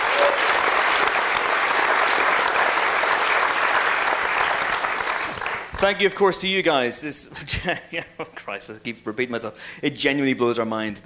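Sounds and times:
audience applause: 0.0s - 5.8s
speech: 5.8s - 11.0s.

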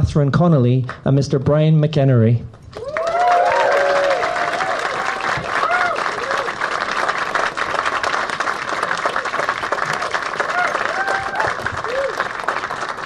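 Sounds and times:
speech: 0.0s - 2.8s
whistles and cheers: 2.8s - 6.8s, 10.3s - 12.4s
audience applause welcoming the President of Ireland in Barcelona: 2.8s - 13.0s.

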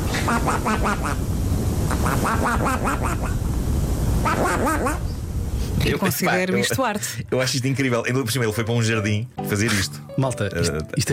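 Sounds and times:
steady low rumbling noise: 0.0s - 8.0s
flatulence mimicking duck quacks: 0.1s - 1.2s, 1.9s - 3.4s, 4.2s - 5.0s
speech: 0.3s - 1.4s, 2.0s - 3.5s, 4.2s - 5.1s, 5.7s - 11.1s.

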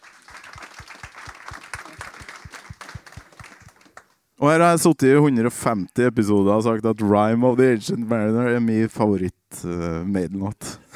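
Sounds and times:
audience applause: 0.0s - 4.2s
speech: 4.4s - 10.6s.

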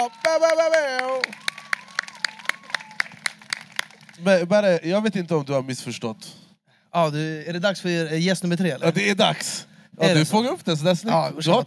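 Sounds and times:
speech: 0.0s - 1.5s, 4.2s - 11.6s
audience applause: 0.0s - 4.5s.

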